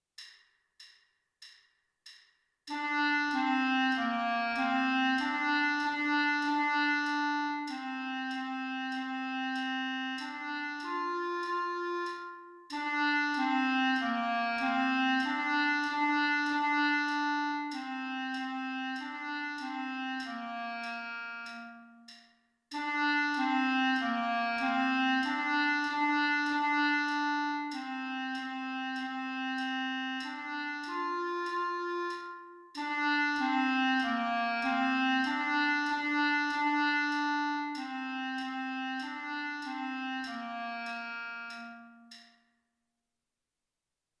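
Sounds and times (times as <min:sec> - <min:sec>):
clarinet: 0:02.7 - 0:42.4.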